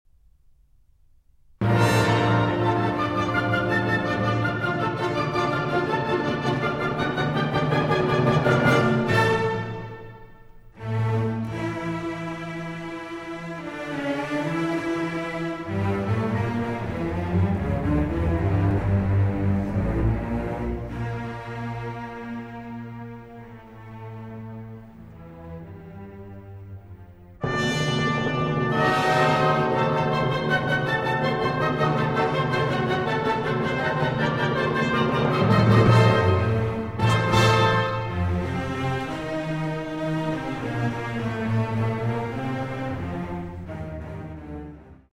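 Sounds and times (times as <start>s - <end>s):
symphony with choir: 1.6s - 45.0s.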